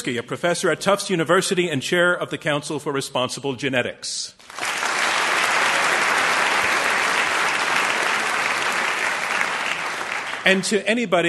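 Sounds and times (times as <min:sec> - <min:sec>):
speech: 0:00.0 - 0:04.6, 0:10.4 - 0:11.2
audience applause: 0:04.4 - 0:10.7.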